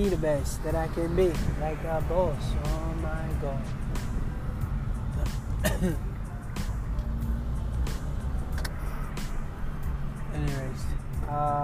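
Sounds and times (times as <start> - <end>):
speech: 0.0 - 3.8, 5.2 - 6.1, 11.3 - 11.6
car engine and road drone: 0.0 - 11.6.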